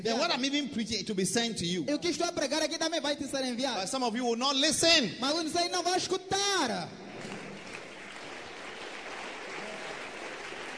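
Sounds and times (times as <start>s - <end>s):
speech: 0.0s - 7.0s
audience clapping: 7.1s - 10.7s.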